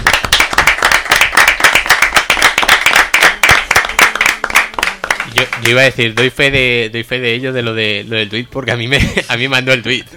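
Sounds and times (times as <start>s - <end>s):
applause: 0.0s - 6.3s
speech: 5.3s - 10.1s.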